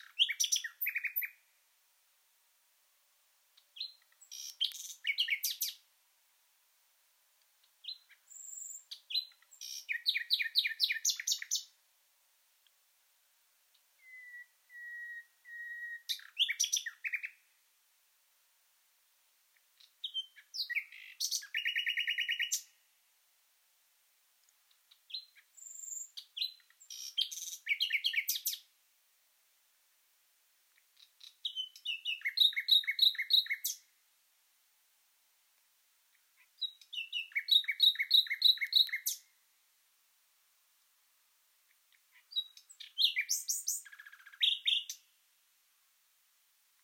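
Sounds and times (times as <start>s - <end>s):
common nightingale song: 0.0s - 1.6s, 3.5s - 5.9s, 7.6s - 11.8s, 13.7s - 17.6s, 19.5s - 22.9s, 24.7s - 28.8s, 30.7s - 34.0s, 36.1s - 39.4s, 41.6s - 45.2s.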